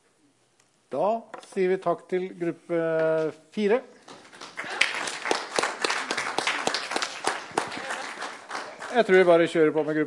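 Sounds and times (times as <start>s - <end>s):
speech: 0.9s - 4.0s, 9.0s - 10.0s
audience clapping for group: 4.0s - 9.4s.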